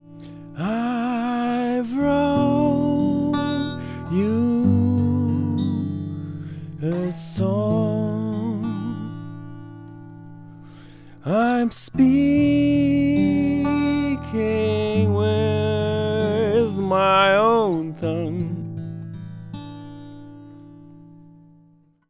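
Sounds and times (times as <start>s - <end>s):
singer-songwriter song: 0.0s - 20.8s.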